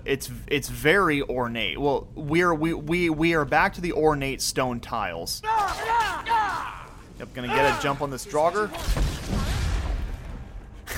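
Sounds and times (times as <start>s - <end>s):
speech: 0.0s - 6.3s, 7.2s - 9.1s
Dawnbreaker magic sword explosion in video game: 8.6s - 10.5s.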